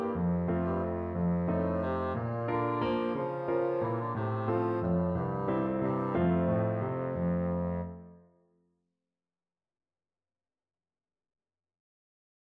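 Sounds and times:
endearing bassoon melody: 0:00.0 - 0:08.2.

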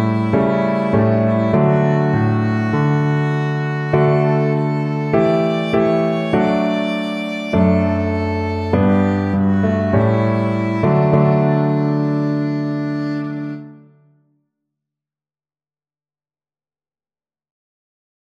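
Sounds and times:
violin playing a Christian hymn: 0:00.0 - 0:13.9.

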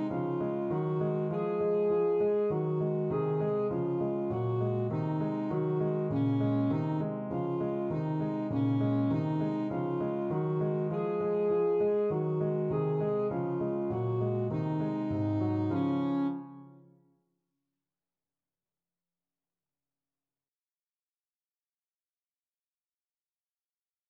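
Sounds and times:
saxophone melody: 0:00.0 - 0:16.9.

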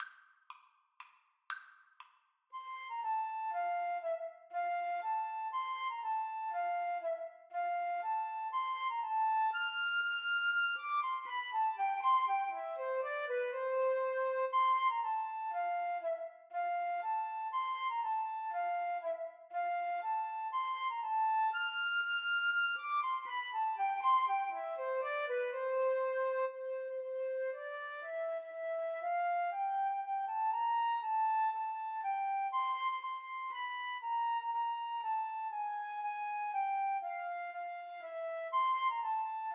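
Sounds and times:
flute duet playing a minuet: 0:02.6 - 0:39.5.

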